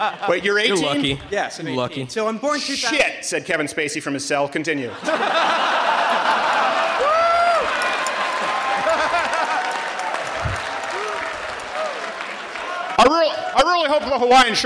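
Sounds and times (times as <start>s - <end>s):
laughter: 0.0s - 3.0s, 4.8s - 11.3s
speech: 0.0s - 6.5s, 13.0s - 14.6s
audience clapping: 5.8s - 14.1s.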